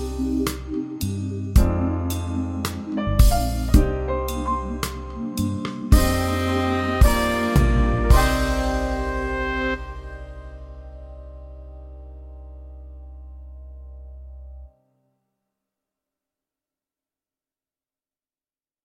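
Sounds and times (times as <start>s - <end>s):
beat at 110 BPM: 0.0s - 11.4s.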